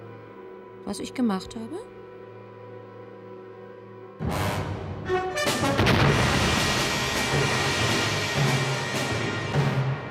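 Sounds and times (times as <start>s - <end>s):
speech: 0.8s - 1.9s
meteorite impact explosion: 4.2s - 10.0s.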